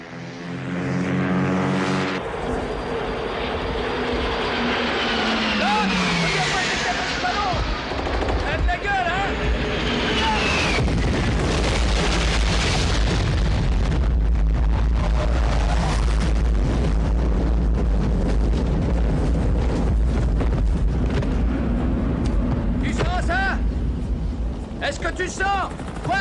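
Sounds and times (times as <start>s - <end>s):
roaring jet aircraft dropping napalm: 0.0s - 26.1s
heavy napalm explosions: 10.3s - 23.3s.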